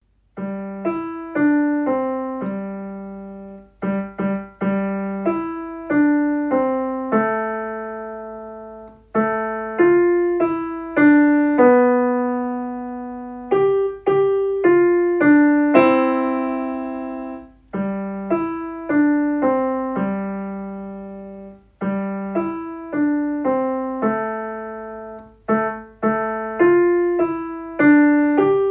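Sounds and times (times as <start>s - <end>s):
home recorded Christmas song by students: 0.0s - 28.6s.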